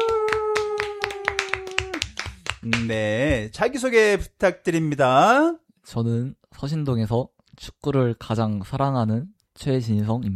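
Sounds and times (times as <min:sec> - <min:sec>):
rhythmic hand clapping on a stage show: 0:00.0 - 0:03.3
speech: 0:02.6 - 0:10.3.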